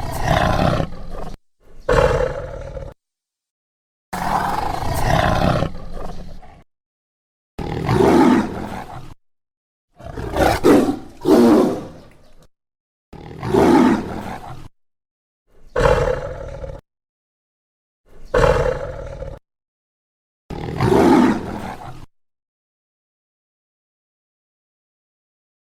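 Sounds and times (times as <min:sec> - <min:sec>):
tiger roaring: 0:00.0 - 0:03.0, 0:04.2 - 0:06.6, 0:07.6 - 0:09.2, 0:10.0 - 0:12.2, 0:13.2 - 0:14.7, 0:15.7 - 0:16.8, 0:18.1 - 0:19.4, 0:20.5 - 0:22.1.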